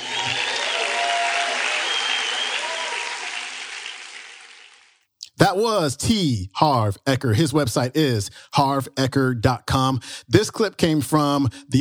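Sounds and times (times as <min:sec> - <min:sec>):
large audience applause: 0:00.0 - 0:05.0
speech: 0:05.5 - 0:11.8.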